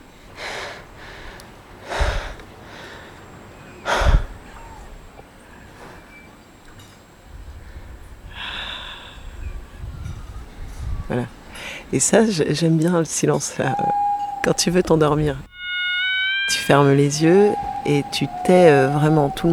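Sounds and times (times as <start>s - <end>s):
slow breathing in and out: 0.2s - 6.1s, 7.5s - 9.7s, 11.5s - 12.0s
speech: 11.1s - 15.5s, 16.5s - 19.5s.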